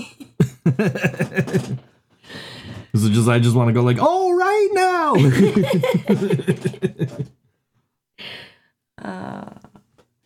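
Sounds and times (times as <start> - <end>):
person coughing: 0.0 - 1.7
laughter: 0.0 - 1.8, 5.2 - 7.3
speech: 0.0 - 1.8, 3.0 - 7.4.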